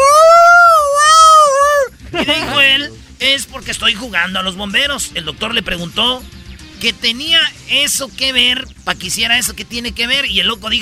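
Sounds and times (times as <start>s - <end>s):
person imitating a dog's howl: 0.0s - 1.9s
laughter: 1.8s - 3.0s
speech: 3.3s - 10.8s.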